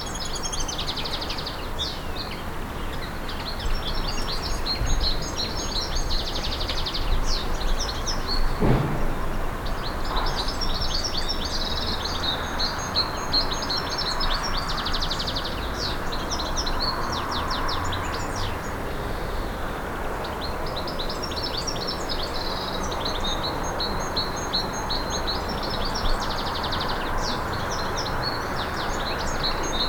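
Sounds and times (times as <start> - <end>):
birds in a garden: 0.0 - 29.8.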